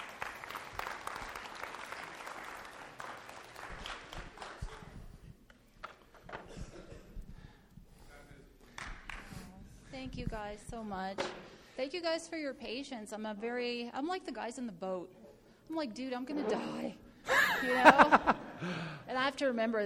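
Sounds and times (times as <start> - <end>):
audience applause: 0.0 - 4.9
speech: 10.2 - 17.0, 17.6 - 19.8
laughter: 17.2 - 18.9.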